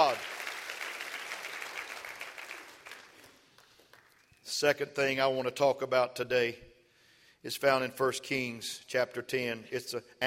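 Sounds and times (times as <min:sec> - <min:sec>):
audience clapping hands: 0:00.0 - 0:04.4
speech: 0:04.6 - 0:06.7, 0:07.4 - 0:10.2.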